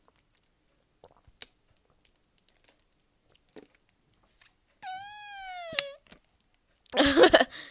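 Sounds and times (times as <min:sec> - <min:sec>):
crackling crinkling noise: 0:00.0 - 0:07.0
drink making a squeaky fart-like tone: 0:04.8 - 0:06.0.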